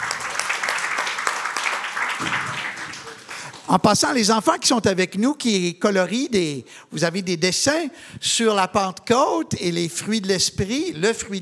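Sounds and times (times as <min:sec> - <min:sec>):
audience applauding the technical team: 0:00.0 - 0:04.4
speech: 0:03.7 - 0:11.3.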